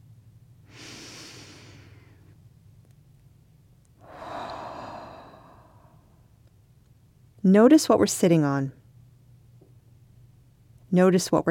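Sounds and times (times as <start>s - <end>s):
slow deep breaths: 0.7s - 2.4s, 4.0s - 6.3s
speech: 7.4s - 8.8s, 11.0s - 11.4s.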